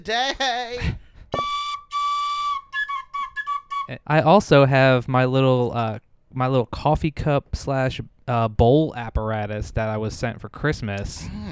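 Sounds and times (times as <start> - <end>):
speech: 0.0 - 1.0, 3.9 - 11.5
recorder playing breathy notes: 1.3 - 3.9.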